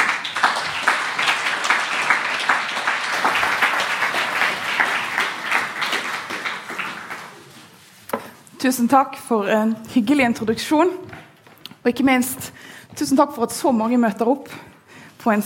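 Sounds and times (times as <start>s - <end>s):
audience applause: 0.0s - 8.0s
speech: 8.6s - 11.0s, 11.9s - 15.4s.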